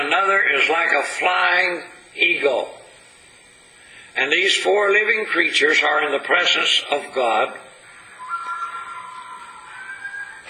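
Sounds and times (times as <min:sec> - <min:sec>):
speech: 0:00.2 - 0:02.8, 0:04.2 - 0:07.7
whippoorwill-like whistling call: 0:08.0 - 0:10.4.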